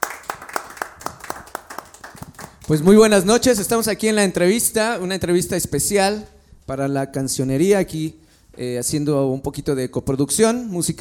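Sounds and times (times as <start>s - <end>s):
steady clapping at a fifth-anniversary event: 0.0s - 4.0s
speech: 2.7s - 10.9s.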